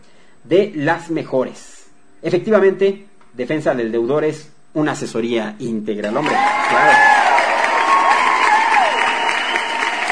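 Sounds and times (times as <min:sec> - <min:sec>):
speech: 0:00.4 - 0:07.3
applause on a late-night call-in show: 0:06.1 - 0:10.1.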